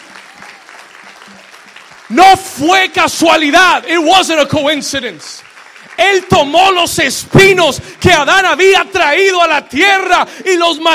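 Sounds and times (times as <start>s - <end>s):
loud audience applause: 0.0s - 8.8s
speech: 2.1s - 10.9s.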